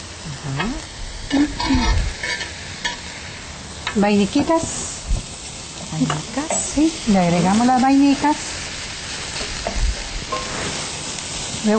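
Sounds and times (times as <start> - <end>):
chicken and carrot sizzling in a hot pan: 0.0 - 11.7
speech: 0.4 - 0.9, 4.0 - 4.9, 6.0 - 8.5
scraping, clattering stirs of chicken and carrot in a pan: 1.3 - 3.2, 6.1 - 11.7.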